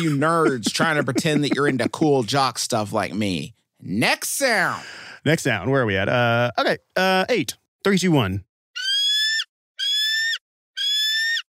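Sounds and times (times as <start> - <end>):
laughter: 0.0 - 2.4
speech: 0.0 - 8.5
baby bald eagle calling: 8.8 - 11.5.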